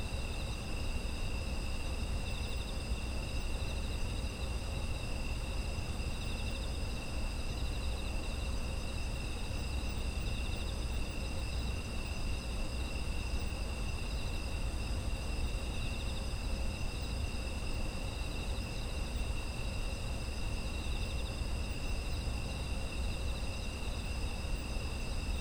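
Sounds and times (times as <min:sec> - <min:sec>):
many insects trilling together: 0:00.0 - 0:25.3.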